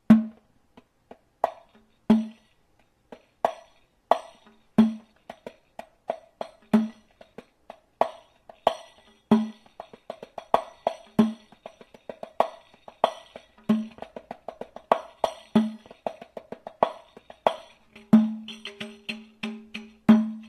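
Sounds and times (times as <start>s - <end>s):
riq frame drum playing nawakht rhythm: 0.0s - 20.4s.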